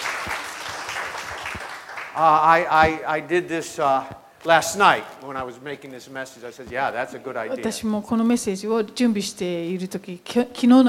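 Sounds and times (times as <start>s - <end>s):
audience clapping hands: 0.0s - 3.1s
speech: 2.2s - 10.8s.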